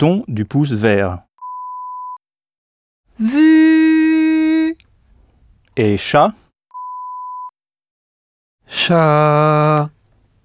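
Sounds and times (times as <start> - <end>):
speech: 0.0 - 1.2, 3.2 - 3.8, 5.8 - 6.4, 8.7 - 10.0
electronic beep tone: 6.7 - 7.5.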